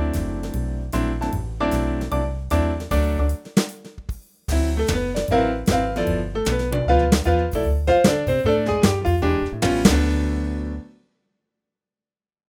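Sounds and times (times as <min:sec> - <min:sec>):
Italian piano sound on PA4X: 0:00.0 - 0:03.4, 0:04.5 - 0:10.9.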